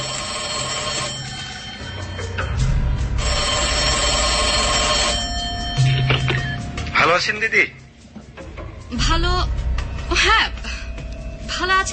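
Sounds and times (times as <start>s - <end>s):
telephone ringing as a call is placed in a drama scene: 0.0s - 2.5s, 3.2s - 6.7s
speech: 7.2s - 7.8s, 9.0s - 10.7s, 11.6s - 11.9s.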